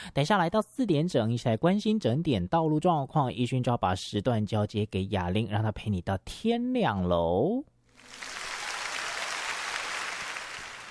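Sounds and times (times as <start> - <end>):
speech: 0.0 - 8.4
applause: 8.0 - 10.9.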